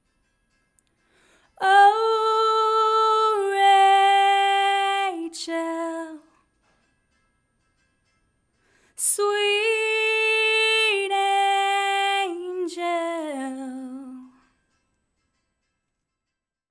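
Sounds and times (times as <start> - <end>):
lead vocal: 1.6 - 6.3, 9.0 - 14.3.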